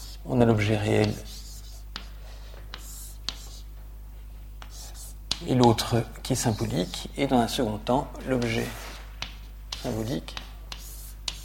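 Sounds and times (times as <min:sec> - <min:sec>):
writing on a blackboard during a lecture: 0:00.0 - 0:00.2, 0:01.0 - 0:03.7, 0:04.6 - 0:05.5, 0:08.4 - 0:11.4
low electrical hum: 0:00.0 - 0:11.4
speech: 0:00.2 - 0:01.3, 0:05.4 - 0:08.9, 0:09.8 - 0:10.4.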